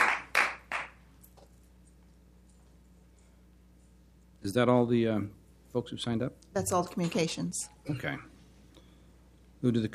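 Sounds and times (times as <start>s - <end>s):
scattered hand claps from an audience: 0.0s - 1.0s
speech: 4.4s - 8.3s, 9.6s - 9.9s.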